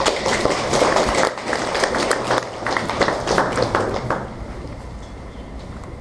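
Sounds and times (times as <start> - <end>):
audience applause: 0.0 - 4.8.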